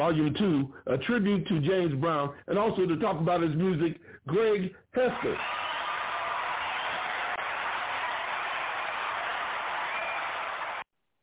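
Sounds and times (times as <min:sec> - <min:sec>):
speech: 0:00.0 - 0:05.6
people cheering and applauding: 0:05.0 - 0:10.9.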